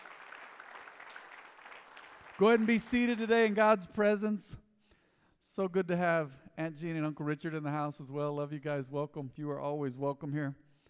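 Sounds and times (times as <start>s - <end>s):
audience clapping: 0.0s - 3.8s
speech: 2.4s - 4.6s, 5.6s - 10.6s.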